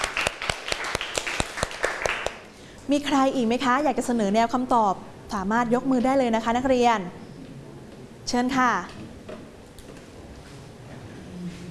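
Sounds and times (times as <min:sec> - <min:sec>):
classroom of students clapping for a classmate: 0:00.0 - 0:02.6
speech: 0:02.9 - 0:07.2, 0:08.3 - 0:09.0.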